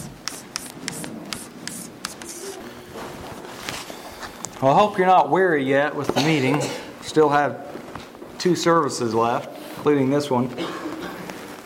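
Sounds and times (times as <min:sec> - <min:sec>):
question being written on a board: 0:00.0 - 0:02.6
speech: 0:04.6 - 0:07.6, 0:08.4 - 0:10.8.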